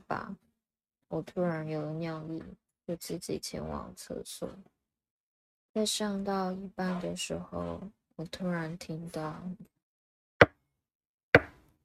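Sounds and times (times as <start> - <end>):
speech: 0.1 - 0.4, 1.1 - 4.7, 5.8 - 9.7
knocking on a door: 11.4 - 11.6.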